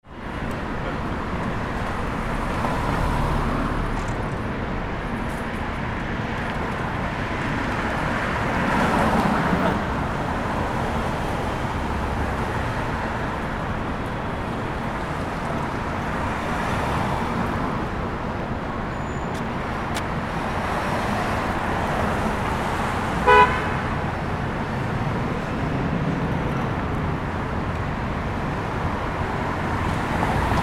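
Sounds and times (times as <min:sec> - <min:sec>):
street corner ambience: 0:00.0 - 0:30.6.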